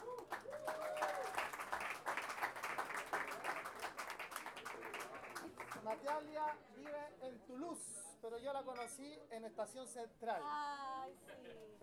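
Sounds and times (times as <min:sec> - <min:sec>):
whistles and cheers: 0:00.0 - 0:01.6
audience applause at a launch event: 0:00.0 - 0:06.1
speech: 0:05.9 - 0:11.8.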